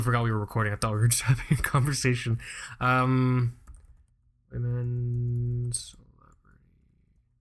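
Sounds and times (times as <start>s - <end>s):
speech: 0.0s - 3.6s, 4.5s - 6.0s
computer keyboard typing a Google search: 3.6s - 4.2s, 4.8s - 5.9s.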